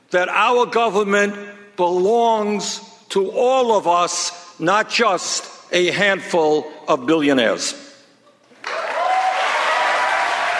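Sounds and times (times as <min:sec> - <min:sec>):
speech: 0:00.1 - 0:07.9
crowd applauding and cheering after speech: 0:08.6 - 0:10.5.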